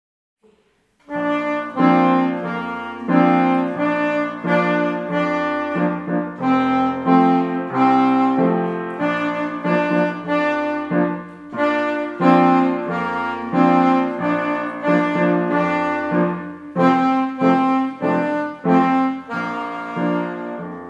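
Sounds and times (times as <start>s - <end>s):
saxophone: 0.4s - 20.8s.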